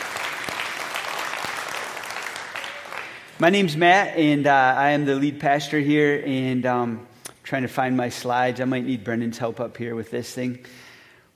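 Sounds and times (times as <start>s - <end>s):
audience clapping: 0.0s - 3.6s
speech: 3.4s - 10.8s.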